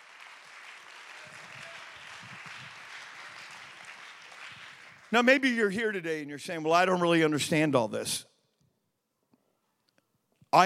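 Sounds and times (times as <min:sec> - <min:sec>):
audience clapping hands: 0:00.0 - 0:06.0
speech: 0:05.1 - 0:08.3.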